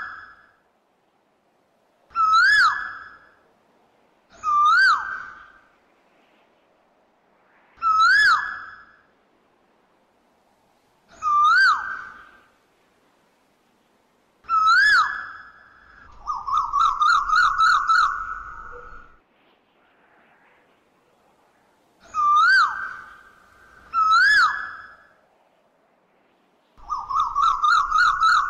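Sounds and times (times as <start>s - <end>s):
Asian koel swooping and rising-falling whistled calls: 2.1s - 3.3s, 4.3s - 5.6s, 7.8s - 9.1s, 11.1s - 12.4s, 14.4s - 19.2s, 22.0s - 25.2s, 26.8s - 28.4s.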